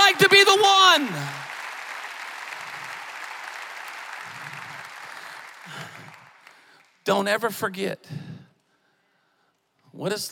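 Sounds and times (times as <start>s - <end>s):
large crowd clapping: 0.0s - 7.3s
speech: 7.1s - 8.3s, 10.0s - 10.3s.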